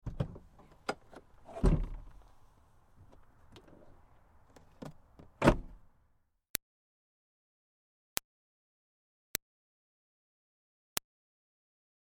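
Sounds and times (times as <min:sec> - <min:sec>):
Smart car trunk opening and closing: 0:00.0 - 0:02.2, 0:04.8 - 0:05.8.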